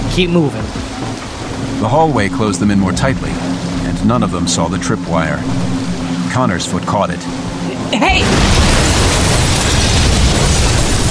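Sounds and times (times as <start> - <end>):
speech: 0.2 - 0.8, 1.8 - 9.1
explosion shattering a desk and aquarium glass: 8.2 - 11.1.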